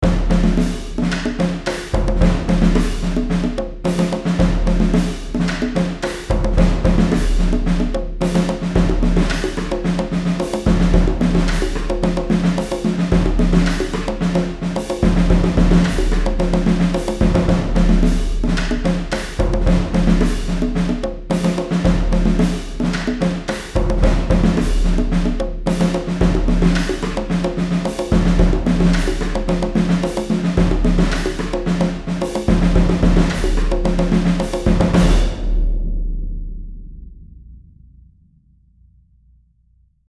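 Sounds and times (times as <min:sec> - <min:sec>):
percussion intro: 0:00.0 - 0:39.0.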